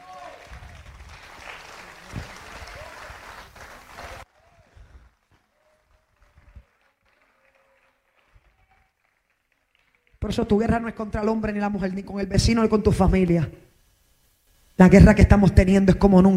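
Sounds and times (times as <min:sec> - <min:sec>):
crowd applause: 0:00.0 - 0:10.2
speech: 0:10.3 - 0:13.6, 0:14.8 - 0:16.3.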